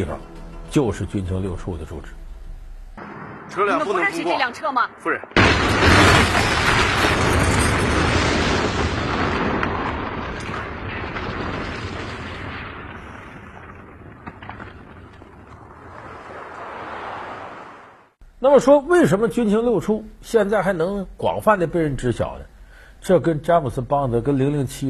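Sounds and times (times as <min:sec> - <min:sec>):
speech: 0:00.0 - 0:02.2, 0:03.5 - 0:06.2, 0:18.4 - 0:24.8
bomb explosion from the MI6 attack in the film Skyfall: 0:03.0 - 0:03.8, 0:05.3 - 0:17.1.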